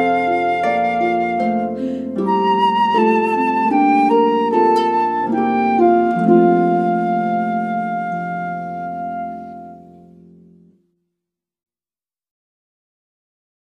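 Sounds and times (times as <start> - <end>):
flute: 0.0 - 10.2
harp: 0.0 - 10.8.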